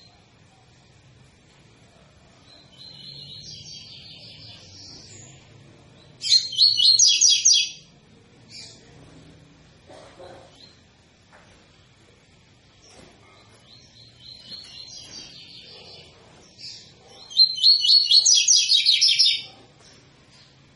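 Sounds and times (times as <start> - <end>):
double-collared seedeater song: 2.3 - 9.0, 12.8 - 20.7.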